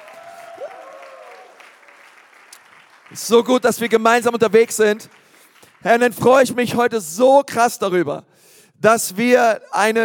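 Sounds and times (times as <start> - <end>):
audience applause: 0.0 - 6.1
speech: 3.1 - 5.2, 5.8 - 10.0.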